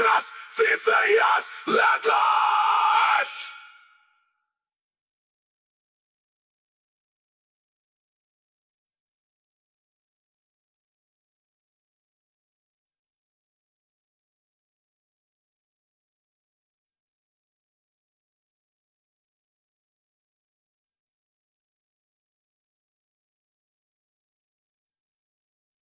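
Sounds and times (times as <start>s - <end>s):
person singing: 0.0s - 3.6s.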